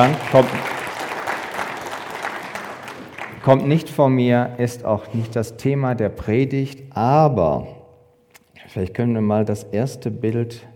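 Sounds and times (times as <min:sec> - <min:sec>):
speech: 0:00.0 - 0:00.7, 0:03.4 - 0:07.7, 0:08.7 - 0:10.7
church congregation clapping: 0:00.0 - 0:04.0.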